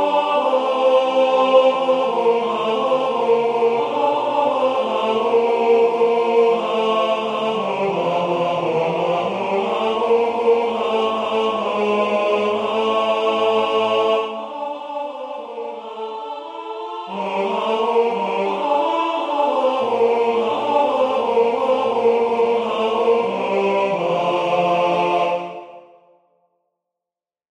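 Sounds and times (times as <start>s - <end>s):
tenor singing: 0.0s - 25.8s.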